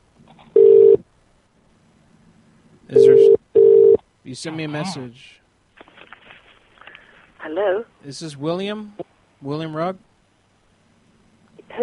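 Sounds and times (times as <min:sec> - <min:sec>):
single short electronic phone tone: 0:03.0 - 0:04.0
speech: 0:04.3 - 0:05.4, 0:07.5 - 0:10.1.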